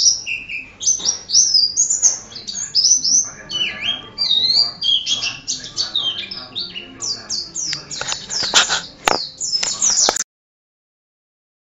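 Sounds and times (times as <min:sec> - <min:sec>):
white-eye song: 0:00.0 - 0:10.2.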